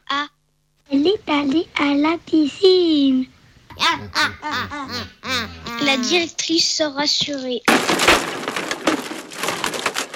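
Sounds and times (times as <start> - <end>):
speech: 1.0 - 7.9
wooden chair breaking: 7.7 - 10.1.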